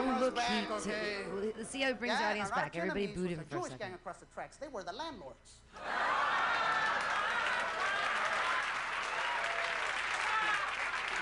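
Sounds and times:
speech: 0:00.2 - 0:06.6
audience applause at a stand-up comedy show: 0:05.8 - 0:11.2.

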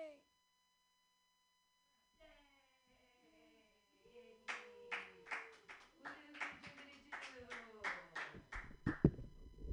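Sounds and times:
audience clapping: 0:04.5 - 0:09.1.

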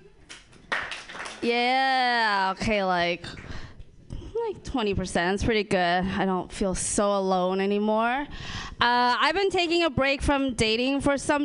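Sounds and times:
audience clapping hands: 0:00.2 - 0:01.6
speech: 0:01.4 - 0:03.4, 0:04.5 - 0:11.4.

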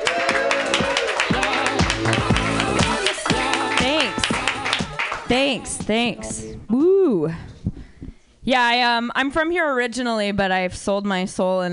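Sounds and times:
cheers and whoops: 0:00.0 - 0:01.3
crowd clapping: 0:00.0 - 0:05.3
speech: 0:05.3 - 0:07.5, 0:08.5 - 0:11.7.

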